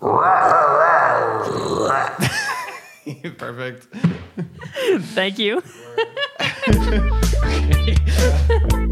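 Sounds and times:
person imitating a baby panther roar: 0.0 - 2.2
laughter: 2.2 - 3.4, 4.0 - 8.8
speech: 3.2 - 8.8.

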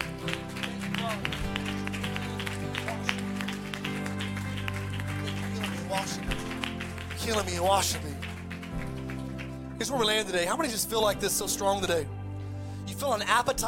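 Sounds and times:
audience hand clapping: 0.0 - 10.5
speech: 7.3 - 8.2, 9.8 - 12.2, 13.0 - 13.6.

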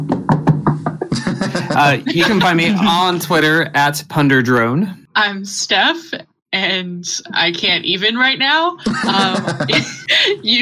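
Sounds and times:
knocking on wood: 0.0 - 1.2
laughter: 0.9 - 3.7, 8.8 - 10.6
speech: 1.8 - 10.6.

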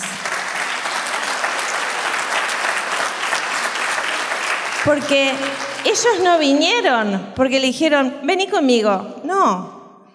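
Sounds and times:
audience applause: 0.0 - 6.6
speech: 4.8 - 9.8.

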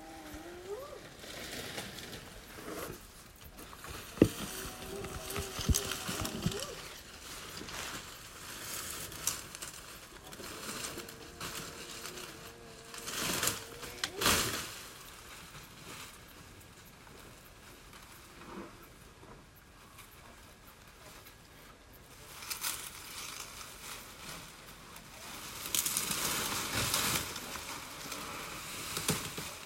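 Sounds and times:
elephant calling outside a lodge room at night: 0.0 - 2.9, 3.6 - 8.0, 9.9 - 15.2
rustling and crunching: 0.0 - 29.6.

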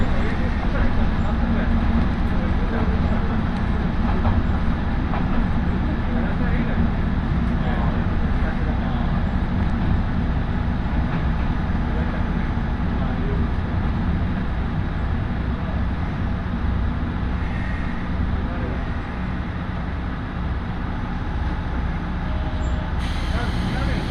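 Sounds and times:
Tarumi Railway train running from Morera Gifu toward Tarumi: 0.0 - 24.1.

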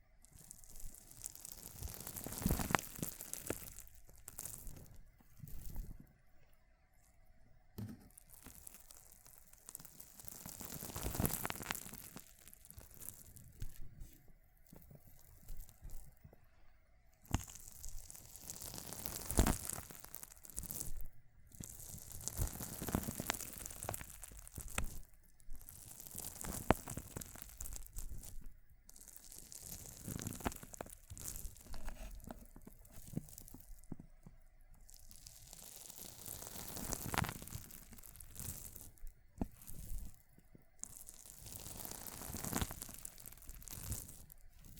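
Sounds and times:
water beads being crushed: 0.3 - 5.8, 8.2 - 13.9, 17.2 - 33.9, 34.8 - 40.2, 40.8 - 44.7.

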